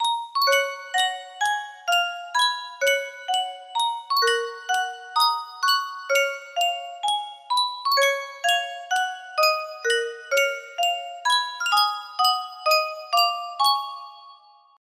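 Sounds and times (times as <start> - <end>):
music box: 0.0 - 14.8.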